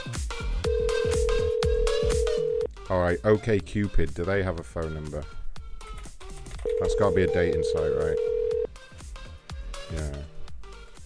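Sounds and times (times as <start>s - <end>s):
electronic telephone ringtone on an unanswered call: 0.7s - 2.7s, 6.7s - 8.7s
speech: 2.9s - 5.4s, 6.8s - 8.3s, 9.9s - 10.3s.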